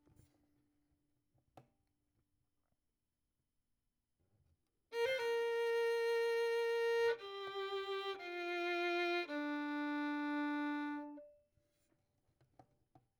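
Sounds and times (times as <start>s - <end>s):
violin: 4.9s - 11.4s.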